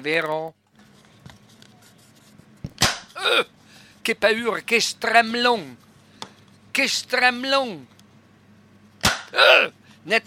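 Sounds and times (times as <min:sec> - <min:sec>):
speech: 0:00.0 - 0:00.6, 0:03.2 - 0:05.9, 0:06.8 - 0:07.9, 0:09.3 - 0:10.2
cracker snapping when broken: 0:02.8 - 0:03.2, 0:09.0 - 0:09.4.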